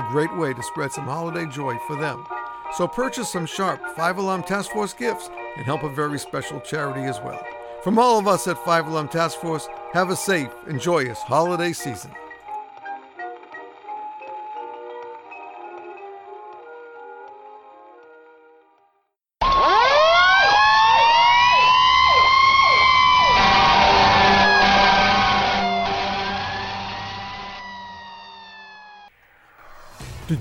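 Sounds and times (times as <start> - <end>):
fire engine sirens: 0.0 - 12.2, 19.4 - 29.1
speech: 0.1 - 12.2.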